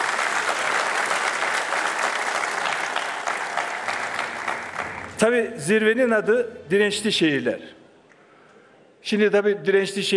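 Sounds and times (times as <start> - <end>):
audience applause: 0.0 - 5.2
speech: 5.2 - 7.8, 9.0 - 10.1.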